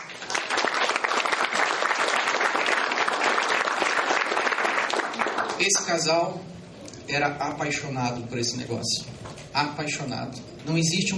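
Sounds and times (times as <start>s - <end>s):
audience applause: 0.0s - 5.9s
speech: 5.6s - 11.1s.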